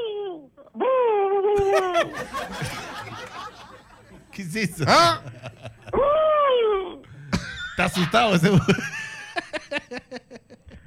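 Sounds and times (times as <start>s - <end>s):
voice imitating owl hoot: 0.0s - 2.0s, 5.9s - 7.1s
laughter: 1.6s - 6.0s, 7.4s - 10.8s
speech: 1.8s - 2.9s, 4.4s - 5.4s, 7.8s - 8.9s
breathy noise: 5.9s - 7.6s.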